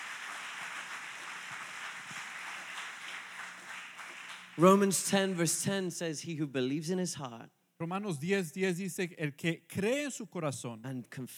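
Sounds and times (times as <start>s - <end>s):
audience applauding: 0.0s - 5.0s
speech: 4.6s - 11.3s.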